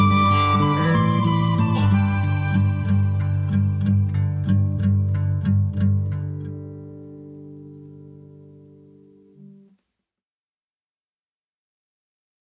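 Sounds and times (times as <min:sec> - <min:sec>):
song accompaniment: 0:00.0 - 0:05.4.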